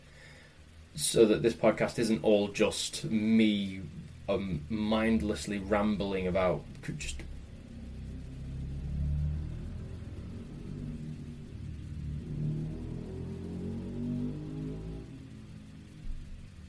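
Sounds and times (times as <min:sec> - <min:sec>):
speech: 0:01.0 - 0:07.3
very loud motorbike passing: 0:04.0 - 0:16.6.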